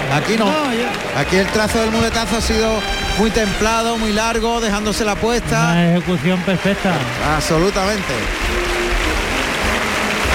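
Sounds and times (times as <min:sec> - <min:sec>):
bullring crowd clapping and cheering in a sustained ovation: 0:00.0 - 0:10.3
speech: 0:00.1 - 0:08.8.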